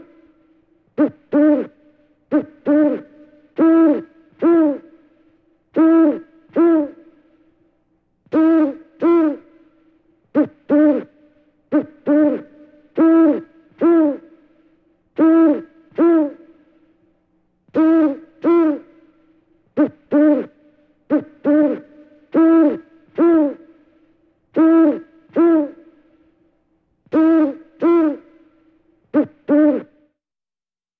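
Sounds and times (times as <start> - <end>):
bird hooting: 1.0 - 5.0, 5.8 - 7.0, 8.3 - 9.5, 10.4 - 14.4, 15.2 - 16.6, 17.7 - 19.0, 19.8 - 23.8, 24.6 - 25.9, 27.1 - 28.4, 29.2 - 30.0.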